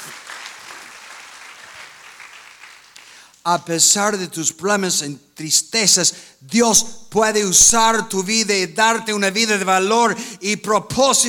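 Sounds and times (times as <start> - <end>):
audience applause: 0.0 - 3.3
speech: 3.4 - 11.2.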